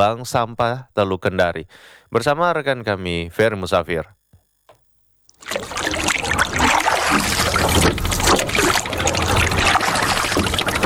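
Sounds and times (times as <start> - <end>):
speech: 0.0 - 4.2
water splashing as a small boat is paddled on bay water: 5.4 - 10.8.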